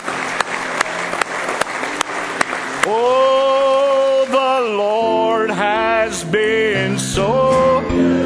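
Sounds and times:
audience hand clapping: 0.0s - 4.8s
speech: 6.0s - 8.1s.

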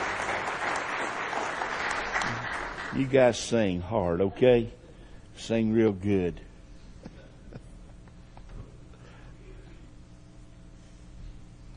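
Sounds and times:
audience hand clapping for children about to sing: 0.0s - 3.4s
speech: 2.9s - 4.8s, 5.4s - 6.5s.

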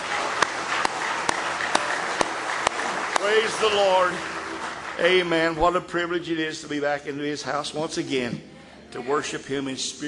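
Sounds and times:
audience hand clapping in praise: 0.0s - 6.4s
speech: 3.3s - 4.4s, 5.0s - 10.0s.

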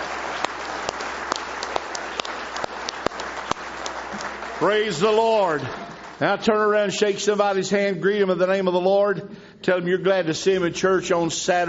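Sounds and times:
audience hand clapping: 0.0s - 7.1s
speech: 4.6s - 11.6s.

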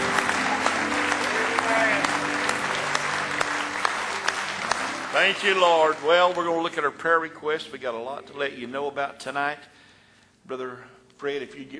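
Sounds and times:
hand clapping: 0.0s - 6.8s
speech: 5.2s - 9.8s, 10.4s - 11.7s.

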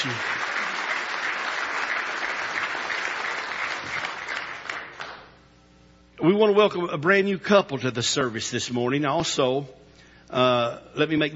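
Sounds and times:
speech: 0.0s - 0.3s, 6.2s - 11.3s
audience clapping: 0.0s - 5.4s.

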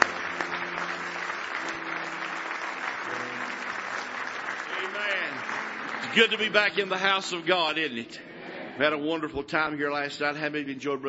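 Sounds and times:
audience hand clapping: 0.0s - 7.8s
speech: 6.1s - 11.0s.

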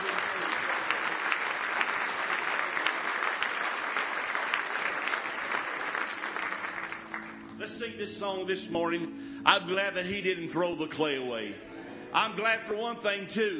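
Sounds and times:
audience applause: 0.0s - 7.6s
speech: 7.8s - 13.5s.

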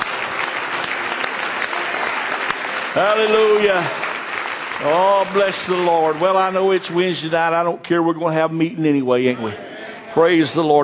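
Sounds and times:
audience applauding: 0.0s - 7.6s
speech: 3.0s - 4.0s, 4.8s - 10.8s.

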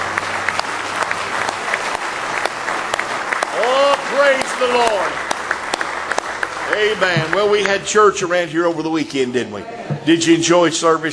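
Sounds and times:
audience hand clapping: 0.0s - 8.4s
speech: 4.3s - 5.2s, 6.8s - 11.1s.

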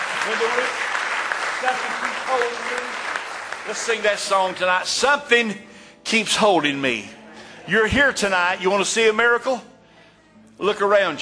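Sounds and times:
audience clapping hands in praise: 0.0s - 5.2s
speech: 0.2s - 0.9s, 1.6s - 9.7s, 10.6s - 11.2s.

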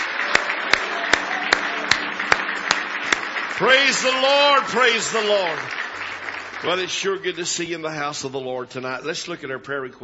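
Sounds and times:
sharp unison claps: 0.0s - 6.7s
audience hand clapping in praise: 0.0s - 8.1s
speech: 3.6s - 5.8s, 6.6s - 10.0s.

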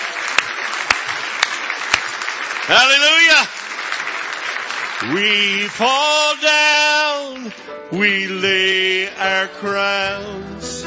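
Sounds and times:
sharp loud claps: 0.0s - 5.8s
church congregation clapping: 0.0s - 9.4s
speech: 2.7s - 3.6s, 5.0s - 10.8s.

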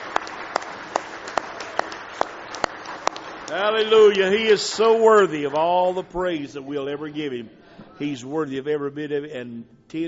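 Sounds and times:
crowd clapping hands in praise: 0.0s - 5.9s
speech: 3.5s - 10.0s.

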